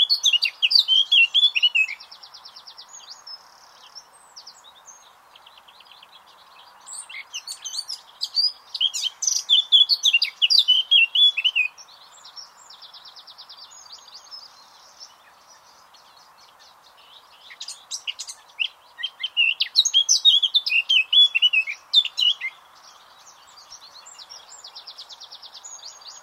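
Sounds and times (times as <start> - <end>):
Eurasian blackcap song: 0.0 - 26.2.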